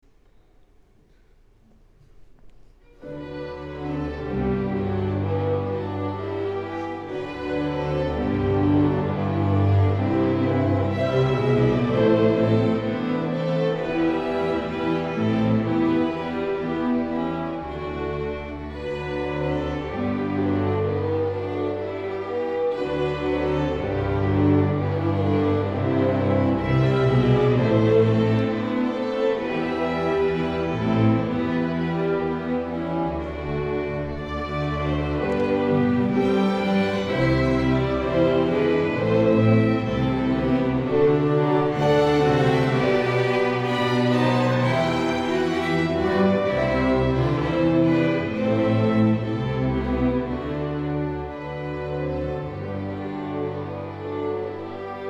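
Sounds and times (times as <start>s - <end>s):
school orchestra playing: 2.8s - 55.0s.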